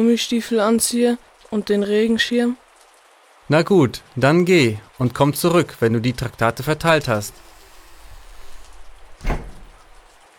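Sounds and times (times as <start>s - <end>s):
speech: 0.0s - 2.6s, 3.5s - 7.5s
pouring rain: 0.0s - 10.3s
short thump: 7.3s - 10.2s.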